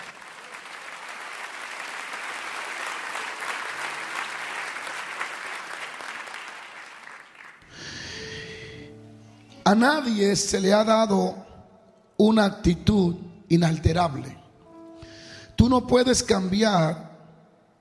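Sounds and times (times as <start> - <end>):
audience applause: 0.0 - 7.9
speech: 9.7 - 11.4, 12.2 - 14.4, 15.6 - 17.0.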